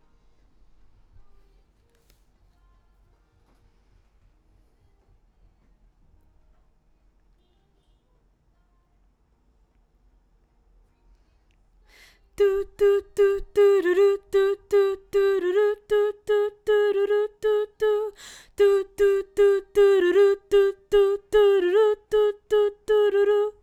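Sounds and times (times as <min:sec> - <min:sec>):
background vocals: 0:12.4 - 0:23.6.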